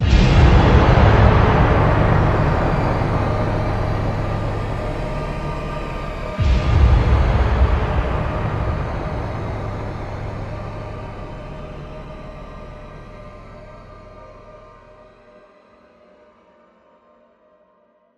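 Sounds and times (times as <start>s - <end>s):
impact: 0.0s - 12.1s.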